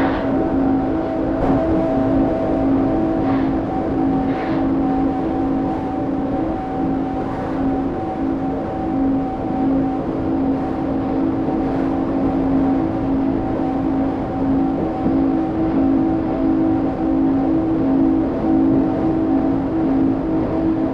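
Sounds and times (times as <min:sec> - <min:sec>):
ambient noise tones: 0:00.0 - 0:20.9.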